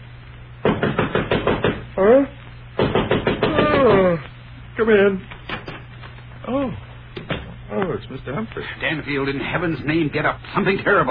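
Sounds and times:
knocking on a bedroom door: 0.6 - 1.9, 2.8 - 4.0
speech: 2.0 - 2.4, 3.8 - 5.3, 6.4 - 6.8, 7.7 - 11.0.

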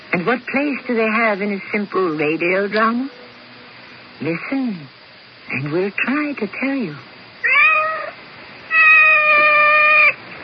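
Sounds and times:
speech: 0.1 - 3.2, 4.2 - 7.1
cat meowing: 7.4 - 10.2.

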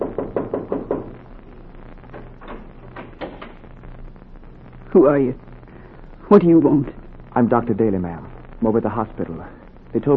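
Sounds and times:
knocking on a door: 0.0 - 1.2
low hum: 0.0 - 10.1
speech: 5.0 - 5.5, 6.3 - 10.1.

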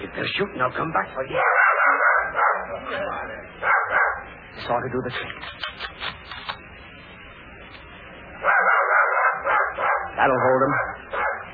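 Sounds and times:
speech: 0.2 - 1.7, 2.7 - 3.8, 4.6 - 6.2, 10.2 - 10.9
several dogs barking and yelping: 1.3 - 4.4, 8.4 - 11.5.

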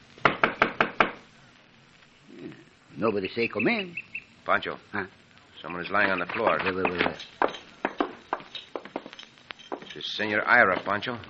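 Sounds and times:
knocking on a cabin door: 0.2 - 1.2
speech: 3.0 - 7.5, 10.0 - 11.2.

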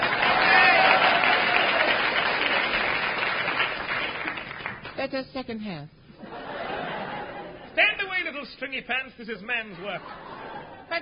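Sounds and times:
audience applause: 0.0 - 5.0
speech: 5.1 - 6.3, 7.8 - 10.3
laughter: 6.2 - 8.0, 9.6 - 11.0.

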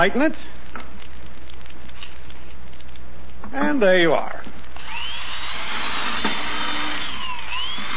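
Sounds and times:
speech: 0.0 - 0.6, 3.5 - 4.6
power drill drilling holes through a board: 4.8 - 7.9.

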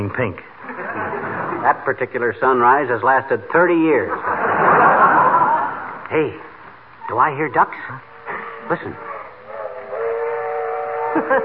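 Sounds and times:
speech: 0.1 - 0.6, 1.6 - 5.2, 6.1 - 6.5, 7.1 - 8.1, 8.7 - 9.1, 11.1 - 11.4
laughter: 0.6 - 1.8, 4.0 - 6.0, 11.1 - 11.4
train whistle blast: 8.0 - 11.4.

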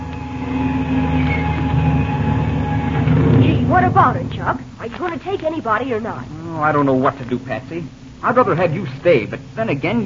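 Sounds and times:
propeller airplane engine starting: 0.0 - 4.9
speech: 3.8 - 10.0.

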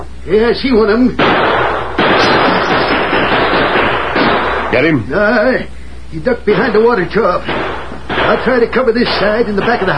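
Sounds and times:
speech: 0.2 - 1.6, 4.7 - 9.9
gunfire exchange: 1.2 - 4.9, 6.5 - 9.9.

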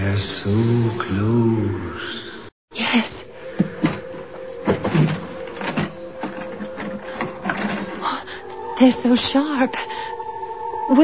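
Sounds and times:
speech: 0.2 - 2.3, 2.9 - 3.2, 8.8 - 10.1, 10.9 - 11.0
drawer opening: 3.5 - 8.3.

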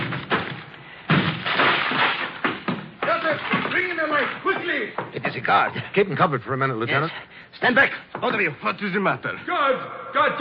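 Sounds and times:
door being broken down: 0.0 - 4.7
speech: 4.8 - 10.4.

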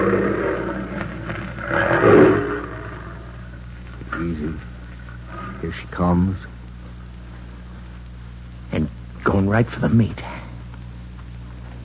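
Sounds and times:
big wild cat roaring: 0.0 - 3.5
speech: 5.8 - 6.5, 9.5 - 10.4.

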